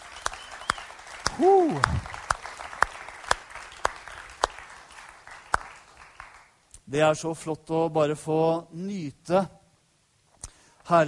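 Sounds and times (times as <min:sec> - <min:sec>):
whooping cheer: 0:00.0 - 0:02.2
audience applauding in a reverberant church hall: 0:00.0 - 0:06.6
speech: 0:01.4 - 0:02.1, 0:06.9 - 0:09.6, 0:10.9 - 0:11.0.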